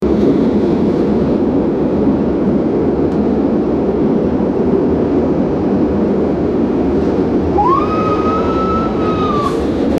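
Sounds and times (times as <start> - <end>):
many real passengers inside airplane cabin during flight: 0.0 - 9.9.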